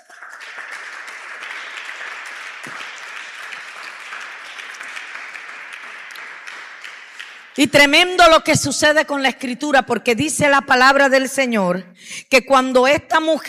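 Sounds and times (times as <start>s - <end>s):
audience applauding: 0.0s - 7.6s
speech: 7.6s - 13.4s.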